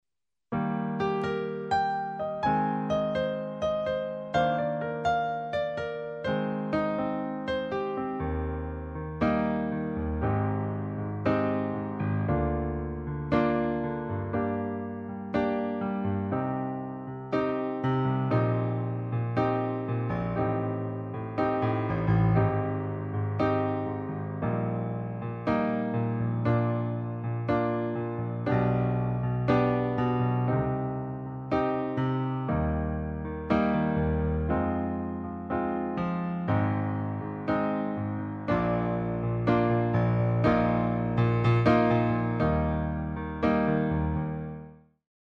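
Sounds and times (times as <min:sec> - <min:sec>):
chords: 0:00.5 - 0:44.6.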